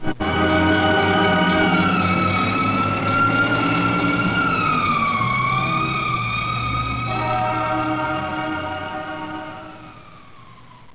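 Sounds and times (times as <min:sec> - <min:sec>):
siren: 0:00.0 - 0:10.9.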